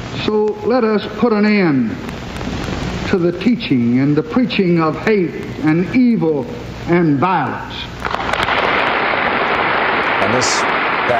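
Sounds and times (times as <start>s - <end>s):
speech: 0.2s - 2.2s, 3.1s - 7.9s, 10.3s - 11.1s
audience applause in Congress: 8.0s - 11.1s.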